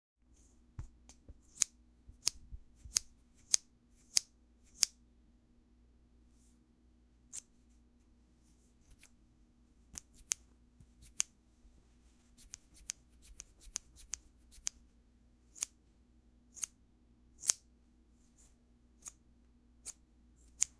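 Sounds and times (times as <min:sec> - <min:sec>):
scissors cutting hair: 0:01.5 - 0:05.0, 0:07.3 - 0:07.6, 0:09.9 - 0:10.4, 0:11.0 - 0:11.3, 0:12.4 - 0:14.8, 0:15.5 - 0:15.8, 0:17.4 - 0:17.6, 0:19.0 - 0:19.2, 0:19.8 - 0:20.7.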